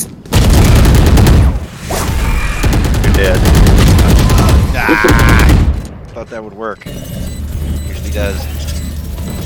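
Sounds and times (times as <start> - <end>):
gunfire in a tactical shooting video game: 0.3 - 1.7, 2.5 - 5.8
speech: 3.2 - 3.6, 4.8 - 5.3, 6.2 - 7.4, 8.1 - 8.8.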